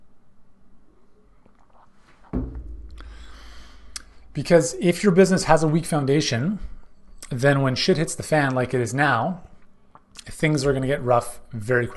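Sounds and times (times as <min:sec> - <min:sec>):
low bump as the cup is lifted: 0:02.3 - 0:04.3
speech: 0:04.4 - 0:06.7, 0:07.3 - 0:09.5, 0:10.4 - 0:11.9.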